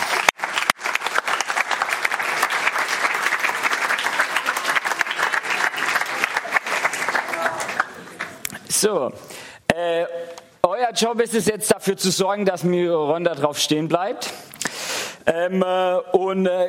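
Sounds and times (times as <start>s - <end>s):
audience applause: 0.0s - 8.5s
speech: 8.8s - 14.5s, 15.3s - 16.6s.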